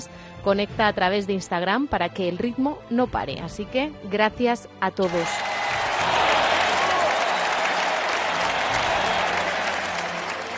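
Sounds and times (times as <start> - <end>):
speech: 0.0 - 5.5
audience ovation and applause: 5.2 - 10.5.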